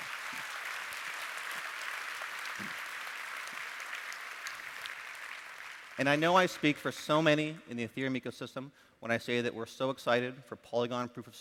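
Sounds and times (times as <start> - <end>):
audience round of applause: 0.0 - 6.7
speech: 6.0 - 11.3.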